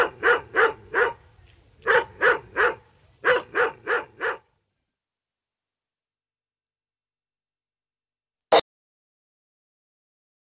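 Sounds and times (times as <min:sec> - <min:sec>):
another dog barking: 0:00.0 - 0:04.6.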